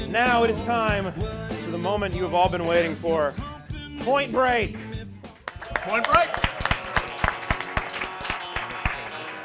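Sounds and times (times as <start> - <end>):
speech: 0.1 - 3.5, 4.1 - 4.8, 5.9 - 6.3
audience applause: 5.4 - 9.4.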